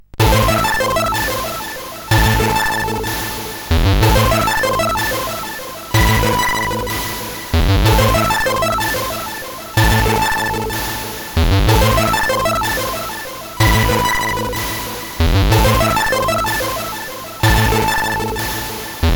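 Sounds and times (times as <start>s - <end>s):
CSG8580 chip music remix: 0.2s - 19.1s.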